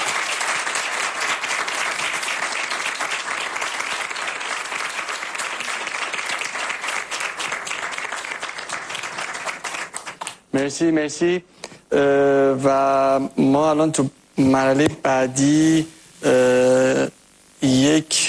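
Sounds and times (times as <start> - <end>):
audience applause: 0.0 - 10.4
speech: 10.6 - 17.1.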